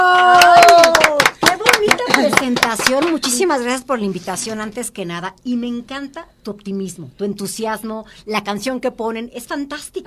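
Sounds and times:
audience applause: 0.0s - 3.2s
speech: 2.7s - 10.0s.

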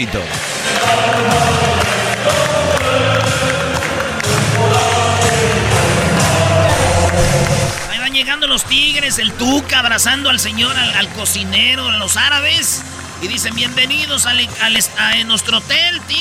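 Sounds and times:
speech: 0.0s - 3.0s, 8.2s - 16.1s
hotel staff clapping and cheering: 0.0s - 16.1s.

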